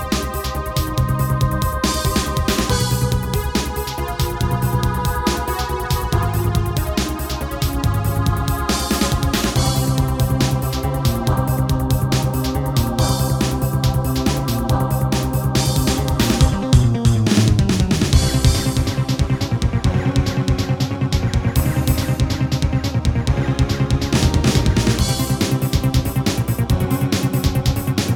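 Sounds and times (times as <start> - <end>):
Casio CTK-800 electronic keyboard: 0.0 - 28.1.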